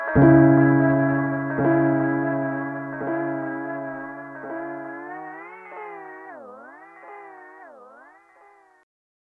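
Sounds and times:
EHX Pico Rerun piano: 0.2s - 6.2s.

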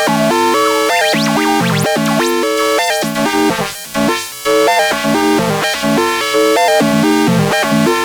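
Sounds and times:
analog synthesizer with hand-modulated high pass filter: 0.0s - 7.9s.

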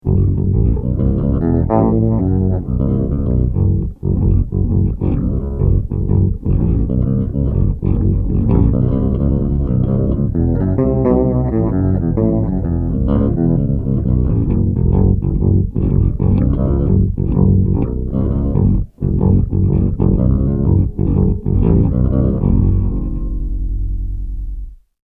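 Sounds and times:
fretless instrument pitched an octave down: 0.0s - 24.8s.

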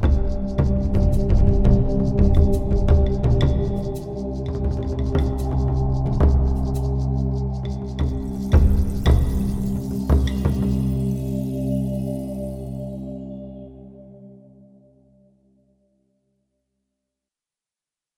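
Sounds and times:
performance groove music: 0.0s - 11.1s.

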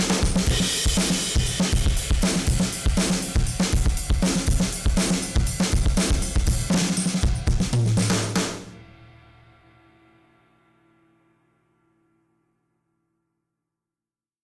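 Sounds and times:
drumbeat: 0.0s - 9.2s.

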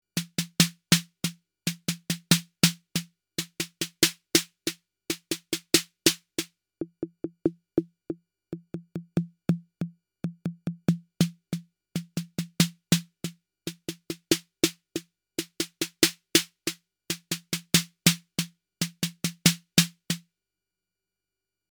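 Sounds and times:
snare drum: 0.2s - 7.5s, 10.5s - 20.2s.

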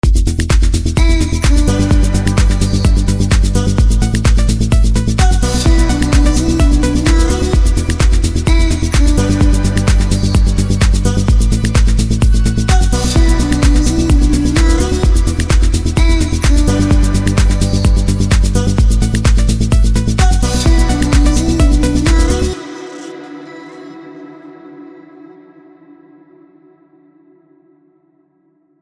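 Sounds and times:
melodic tech voices: 0.4s - 25.2s.

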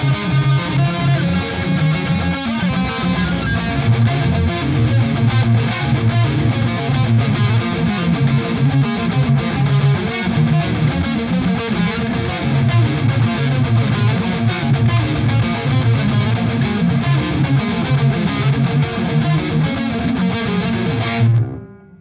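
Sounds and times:
Schecter Omen Elite 7 guitar on bridge pickup with high gain: 0.0s - 21.9s.

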